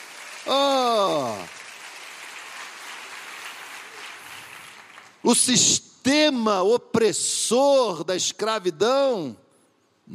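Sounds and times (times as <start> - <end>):
audience applause: 0.0 - 5.2
speech: 5.3 - 9.4.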